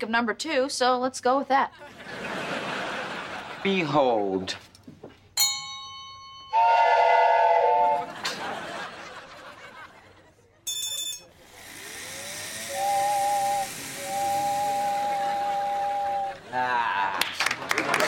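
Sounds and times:
laughter: 0:00.0 - 0:01.5, 0:06.9 - 0:09.5, 0:17.3 - 0:18.0
speech: 0:00.0 - 0:02.6, 0:03.6 - 0:04.7
model train running: 0:10.7 - 0:16.4.

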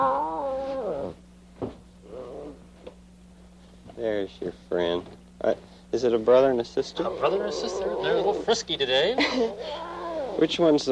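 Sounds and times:
lion cub mewling cry: 0:00.0 - 0:01.2, 0:07.0 - 0:08.8, 0:09.4 - 0:10.5
speech: 0:04.0 - 0:10.9.

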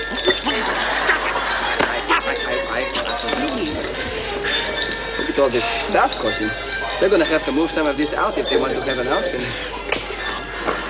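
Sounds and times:
laughter: 0:00.0 - 0:10.8
wind chimes tinkling: 0:00.0 - 0:10.8
speech: 0:05.4 - 0:09.8.

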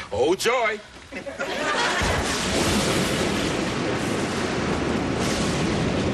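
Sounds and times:
speech: 0:00.2 - 0:01.8
laughter: 0:01.1 - 0:02.4
thunder of a storm: 0:01.8 - 0:06.1.

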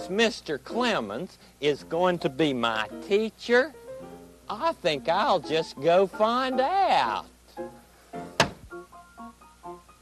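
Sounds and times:
speech: 0:00.0 - 0:03.8, 0:04.5 - 0:08.2
mechanical thunk: 0:08.4 - 0:08.7.

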